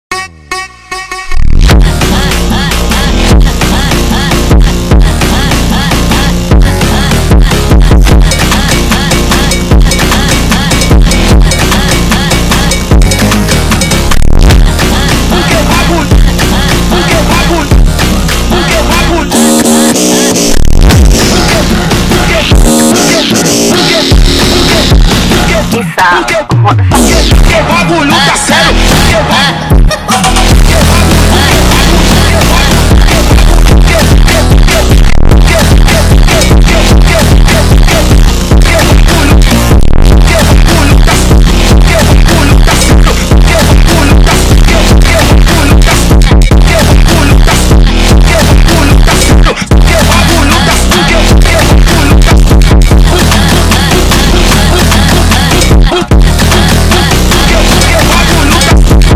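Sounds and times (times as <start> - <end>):
intense phonk beat: 0.1 - 59.1.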